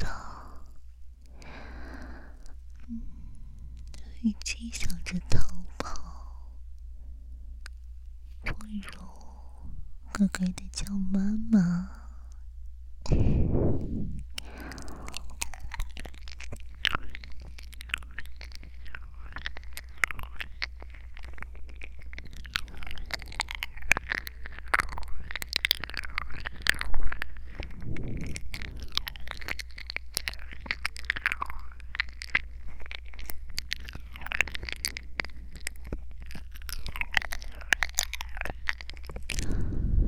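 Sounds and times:
wet chewing and nibbling mouth sounds in an ear-nibbling roleplay: 0:00.0 - 0:06.9, 0:07.6 - 0:12.5, 0:13.1 - 0:39.9
speech: 0:04.2 - 0:05.6, 0:08.7 - 0:09.2, 0:10.2 - 0:12.0, 0:13.1 - 0:14.2.

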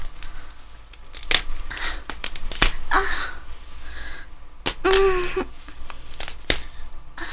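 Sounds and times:
nylon stockings torn open from the middle: 0:01.0 - 0:02.8, 0:04.6 - 0:06.8.

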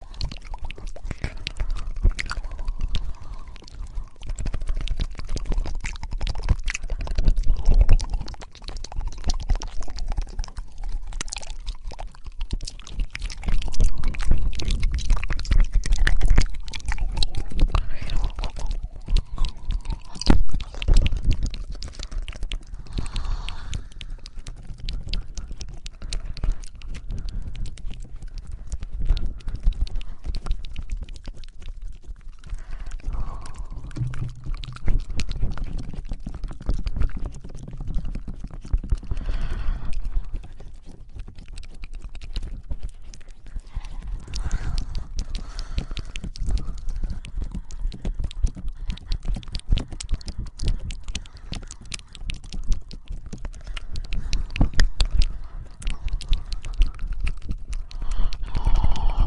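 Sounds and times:
twin tongue fluttering: 0:00.0 - 0:59.2.

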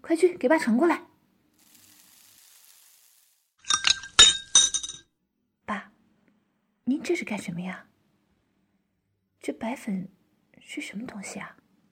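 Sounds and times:
speech: 0:00.1 - 0:01.1, 0:07.1 - 0:07.9, 0:09.4 - 0:11.6
glasses clinking in a toast: 0:03.6 - 0:05.0.

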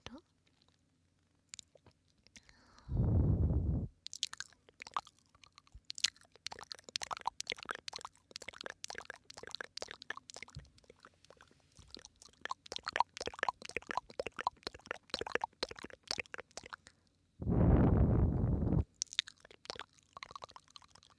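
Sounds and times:
ASMR ear licking wet mouth clicks and smacks: 0:01.5 - 0:02.6, 0:04.0 - 0:17.0, 0:18.9 - 0:21.1
brief loud low thump: 0:17.4 - 0:18.8.

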